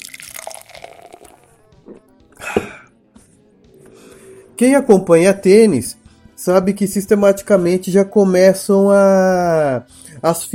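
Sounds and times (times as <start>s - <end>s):
person sipping a drink: 0.0s - 2.9s
speech: 4.6s - 10.5s.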